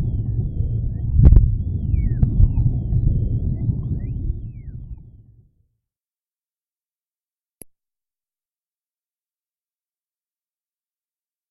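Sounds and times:
harmonic noise: 0.0s - 5.4s.

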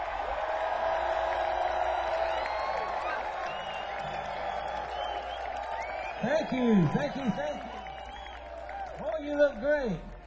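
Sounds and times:
large crowd cheering and applauding: 0.0s - 10.2s
speech: 6.2s - 7.7s, 9.2s - 10.1s.

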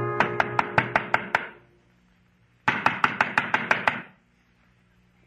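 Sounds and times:
knocking on a door: 0.2s - 1.6s, 2.7s - 4.1s.

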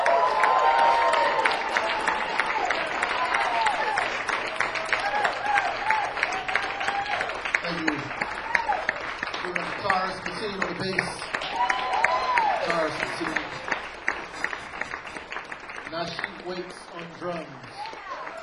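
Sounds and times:
crowd cheering and whooping: 0.0s - 9.6s, 10.8s - 15.3s, 17.8s - 18.4s
crowd applause: 0.0s - 18.4s.

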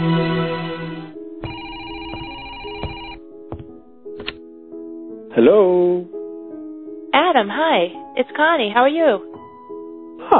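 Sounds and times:
telephone ringing: 1.4s - 3.3s
speech: 5.4s - 6.1s, 7.3s - 9.3s.

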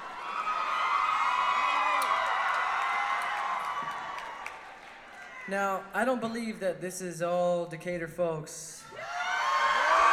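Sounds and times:
crowd hooting, hollering and cheering: 0.0s - 5.5s, 8.9s - 10.1s
speech: 5.5s - 8.8s.

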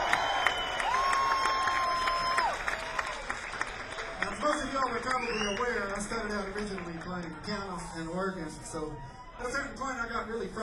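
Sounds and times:
audience applause at end of live band performance: 0.0s - 7.8s
speech: 6.6s - 10.6s.

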